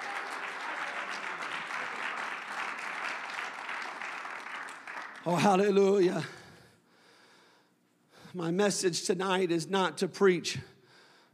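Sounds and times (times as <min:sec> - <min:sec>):
audience clapping hands: 0:00.0 - 0:05.8
speech: 0:05.2 - 0:06.4, 0:08.4 - 0:10.7.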